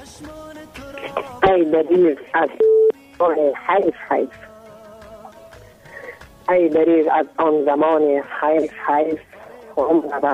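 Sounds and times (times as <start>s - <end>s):
speech: 1.5s - 4.5s, 6.5s - 10.3s
telephone dial tone while a dropped call is reconnected: 2.4s - 3.0s.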